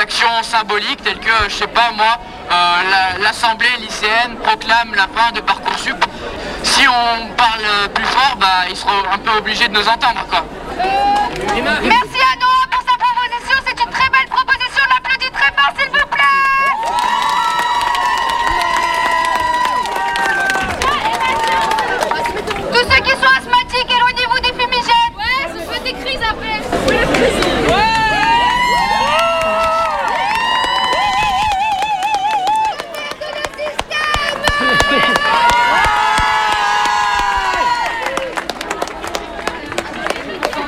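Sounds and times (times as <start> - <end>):
chatter and laughter in a protest crowd: 0.0 - 40.6
speech: 0.2 - 12.8
young high school protesters shouting and chanting at a demonstration: 10.4 - 38.6.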